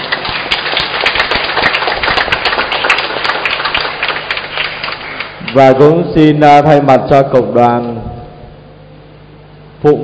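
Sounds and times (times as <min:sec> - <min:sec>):
audience applauding loudly: 0:00.0 - 0:05.9
speech: 0:05.5 - 0:08.0, 0:09.8 - 0:10.0.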